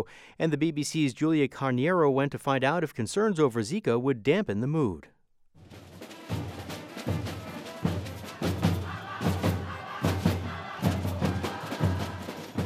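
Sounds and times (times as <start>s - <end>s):
speech: 0.0s - 5.8s
carnival street band: 5.6s - 12.6s
dancing crowd roar: 7.2s - 12.6s.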